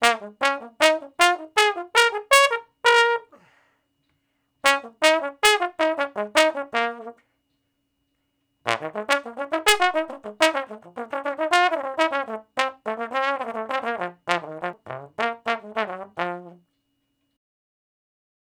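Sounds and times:
trombone shuffle in B flat: 0.0 - 3.4, 4.6 - 7.2, 8.7 - 16.6.

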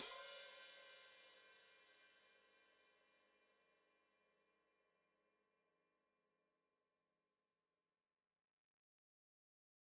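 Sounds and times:
open hi-hat played with foot: 0.0 - 1.0.

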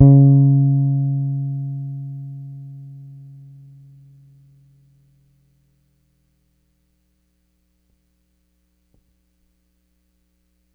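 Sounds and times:
Pedulla Thunderbass bass guitar D sharp note played hard: 0.0 - 4.1.

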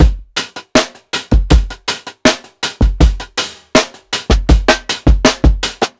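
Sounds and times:
piccolo drum sixteenth-note beat loop: 0.0 - 5.9.

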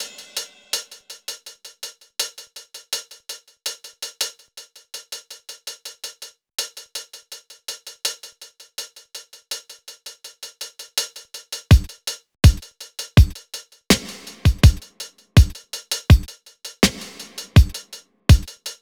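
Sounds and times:
smooth R&B drums: 11.7 - 18.6.

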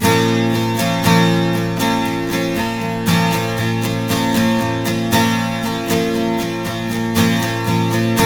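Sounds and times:
12-string guitar B minor chord: 0.0 - 8.2.

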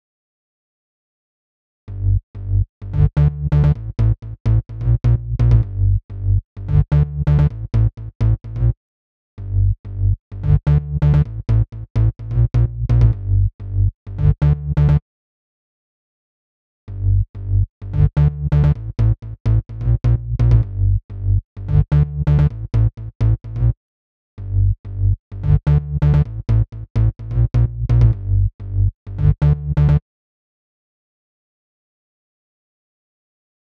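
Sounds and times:
bass line in G: 1.9 - 8.8, 9.4 - 15.0, 16.9 - 23.8, 24.4 - 30.0.

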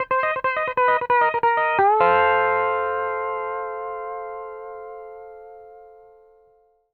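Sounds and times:
country music loop at 140 BPM: 0.0 - 4.3.

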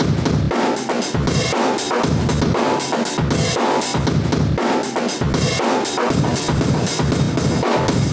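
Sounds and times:
live drum breaks: 0.0 - 8.1.

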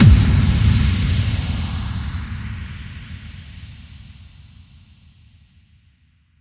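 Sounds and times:
effect kick drum hits: 0.0 - 1.9.

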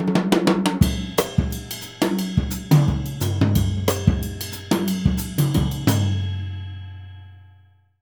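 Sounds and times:
jazz music: 0.8 - 6.3.

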